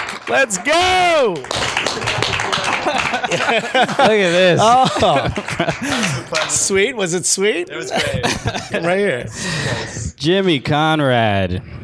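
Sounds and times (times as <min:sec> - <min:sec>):
people cheering: 0:00.0 - 0:06.8
audience applause: 0:00.0 - 0:06.9
speech: 0:00.3 - 0:11.8
laughter: 0:02.0 - 0:06.9, 0:07.6 - 0:09.9.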